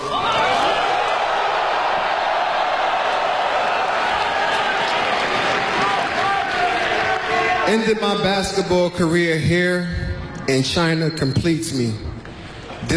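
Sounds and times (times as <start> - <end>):
arena crowd in Beijing cheering at a basketball player's farewell: 0.0 - 8.0
speech: 7.7 - 12.1.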